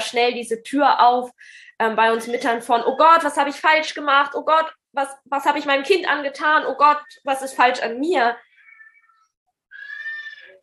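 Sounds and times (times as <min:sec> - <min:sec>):
speech: 0:00.1 - 0:08.5
children screaming in a loudness game: 0:08.6 - 0:10.6.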